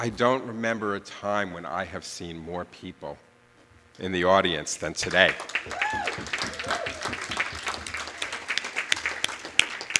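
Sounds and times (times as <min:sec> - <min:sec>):
speech: 0:00.0 - 0:03.3, 0:04.0 - 0:07.1
audience applause: 0:05.0 - 0:09.9.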